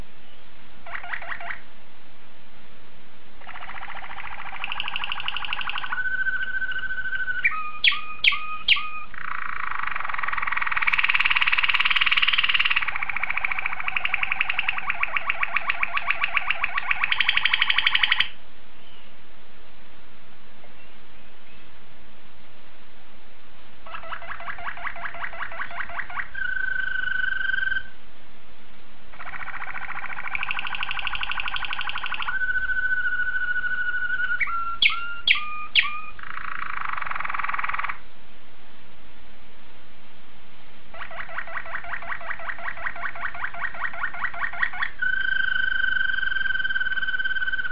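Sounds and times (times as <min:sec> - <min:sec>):
low hiss: 0:00.0 - 0:47.7
domestic canary singing: 0:00.8 - 0:01.7, 0:03.4 - 0:19.1, 0:23.8 - 0:27.9, 0:29.1 - 0:38.0, 0:40.9 - 0:47.7.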